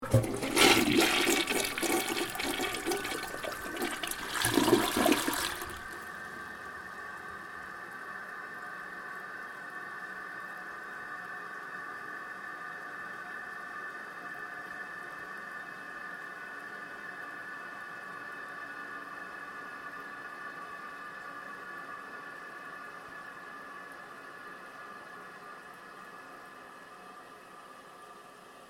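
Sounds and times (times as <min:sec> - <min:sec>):
household toilet flushing: 0:00.0 - 0:07.3.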